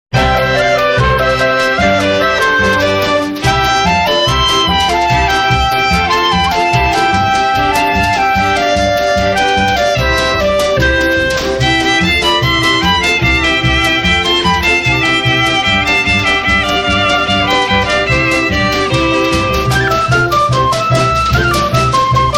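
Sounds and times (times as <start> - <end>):
instrumental folk tune: 0.1 - 22.3.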